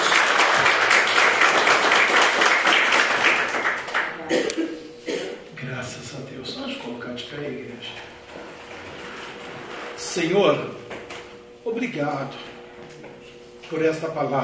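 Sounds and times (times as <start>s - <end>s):
audience applause: 0.0s - 4.3s
speech: 10.2s - 10.8s, 11.8s - 12.5s, 13.7s - 14.4s.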